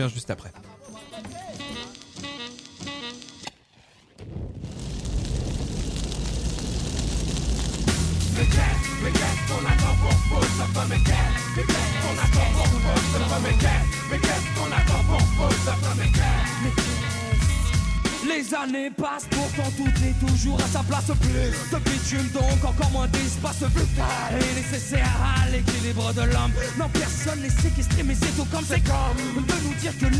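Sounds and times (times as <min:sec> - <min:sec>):
speech: 0:00.0 - 0:00.7, 0:08.4 - 0:17.1, 0:18.2 - 0:30.1
dense roaring noise: 0:04.2 - 0:10.5.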